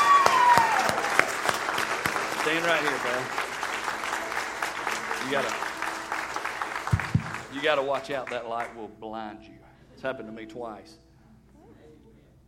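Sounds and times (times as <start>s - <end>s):
audience applause: 0.0s - 8.8s
speech: 2.5s - 3.4s, 5.2s - 5.6s, 7.6s - 11.0s.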